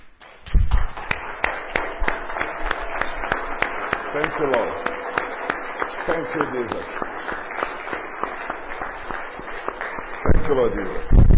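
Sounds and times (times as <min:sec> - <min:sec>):
hand clapping: 0:00.0 - 0:11.3
low murmur: 0:00.6 - 0:11.3
speech: 0:04.2 - 0:04.9, 0:06.1 - 0:07.4, 0:10.5 - 0:11.2.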